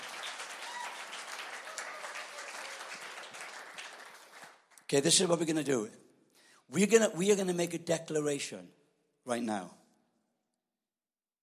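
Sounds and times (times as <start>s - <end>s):
crowd applauding: 0.0s - 5.0s
speech: 4.9s - 6.0s, 6.7s - 9.8s.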